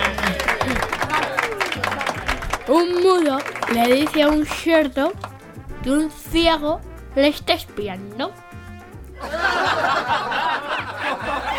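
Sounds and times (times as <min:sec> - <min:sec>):
laughter: 0:00.0 - 0:02.6, 0:09.2 - 0:11.5
applause from a group at a school: 0:00.0 - 0:05.4
speech: 0:02.7 - 0:08.4, 0:09.2 - 0:10.4.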